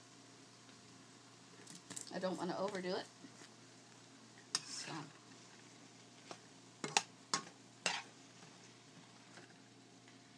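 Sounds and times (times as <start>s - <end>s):
stir fry sizzling in a pan: 0.0s - 10.3s
speech: 2.2s - 3.2s, 4.9s - 5.2s
utensil clattering and scraping against the pan: 4.5s - 5.6s, 6.2s - 9.6s.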